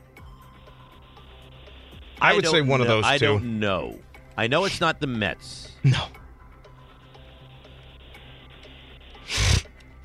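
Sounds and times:
speech: 2.2 - 6.2
person sniffing: 9.2 - 9.7.

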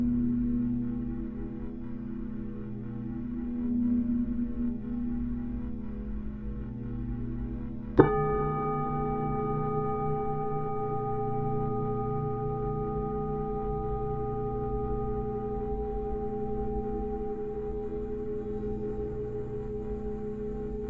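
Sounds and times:
Tibetan singing bowls humming drone: 0.0 - 20.8
Tibetan singing bowl struck and ringing: 8.0 - 20.8.

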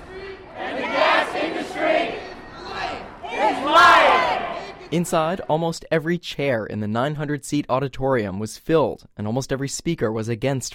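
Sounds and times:
anti-fracking activists chanting a mic check in unison: 0.0 - 5.4
speech: 4.9 - 10.7.

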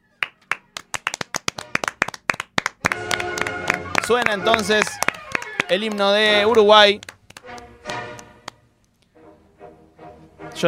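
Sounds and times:
crowd clapping: 0.2 - 8.6
speech: 4.1 - 5.0, 5.7 - 7.1.

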